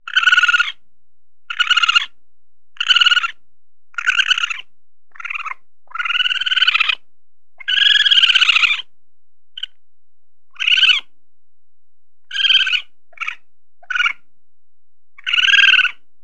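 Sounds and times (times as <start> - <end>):
raccoon chittering: 0.1 - 0.8, 1.5 - 2.1, 2.8 - 3.4, 4.0 - 7.0, 7.6 - 8.8, 10.6 - 11.1, 12.3 - 14.2, 15.2 - 16.0.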